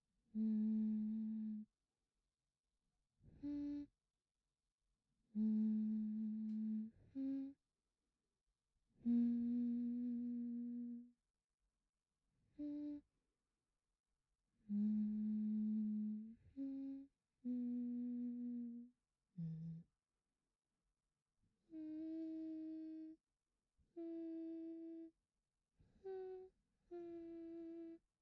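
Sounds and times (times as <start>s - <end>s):
person humming: 0.4s - 1.7s, 3.4s - 3.9s, 5.4s - 7.6s, 9.0s - 11.1s, 12.6s - 13.0s, 14.7s - 19.8s, 21.7s - 23.2s, 24.0s - 25.1s, 26.0s - 28.0s.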